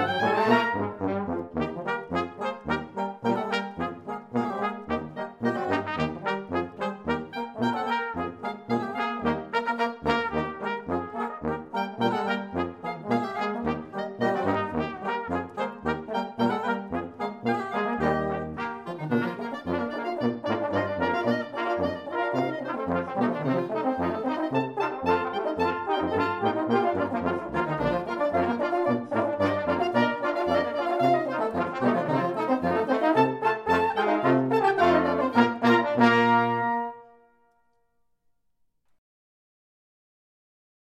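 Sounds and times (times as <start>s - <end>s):
German band playing a clarinet polka: 0.0s - 37.1s.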